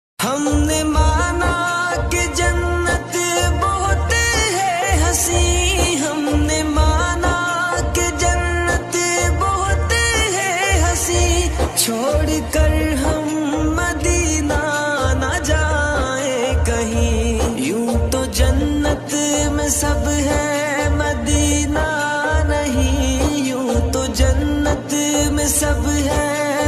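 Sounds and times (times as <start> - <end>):
naat sharif and qawwali devotional singing ringtone: 0.2 - 26.6.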